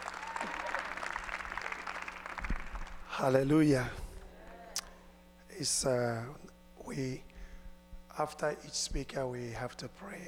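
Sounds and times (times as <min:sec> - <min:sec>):
congregation applauding to welcome a pastor at a church service: 0:00.0 - 0:03.3
speech: 0:03.2 - 0:04.0, 0:05.6 - 0:07.3, 0:08.2 - 0:10.2.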